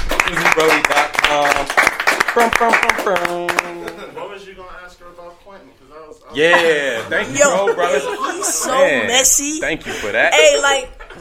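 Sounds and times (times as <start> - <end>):
people clapping: 0.0 - 4.2
speech: 0.3 - 1.8, 2.4 - 11.1
laughter: 6.4 - 11.1.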